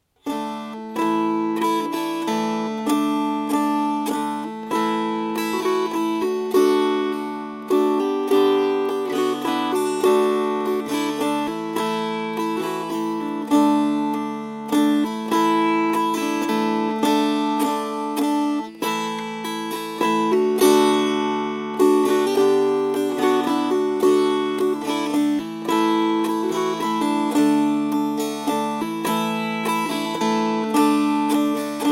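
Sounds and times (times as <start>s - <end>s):
strummed strings: 0.0s - 31.9s.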